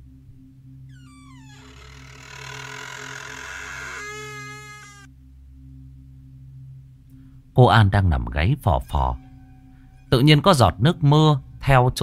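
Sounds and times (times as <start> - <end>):
door creaking: 0.9 - 5.1
speech: 7.6 - 9.2, 10.1 - 12.0.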